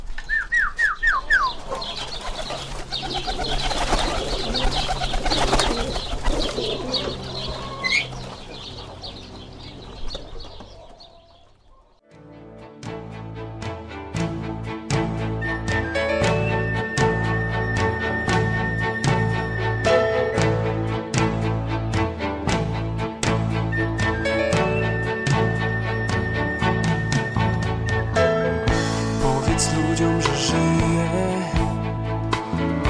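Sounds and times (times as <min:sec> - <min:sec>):
bird wings flapping and fluttering: 0:00.0 - 0:11.1
crowd of birds cooing: 0:00.3 - 0:12.0
loud steady music: 0:12.5 - 0:32.8.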